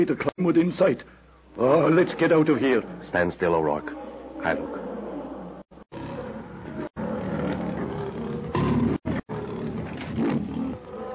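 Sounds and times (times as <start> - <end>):
speech: 0.0 - 4.9
lion growling: 1.7 - 11.1.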